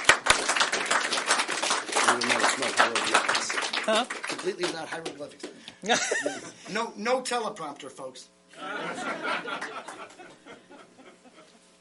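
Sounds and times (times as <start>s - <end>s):
audience applause: 0.0s - 5.2s
speech: 2.1s - 10.3s
laughter: 5.8s - 6.6s, 8.6s - 11.6s.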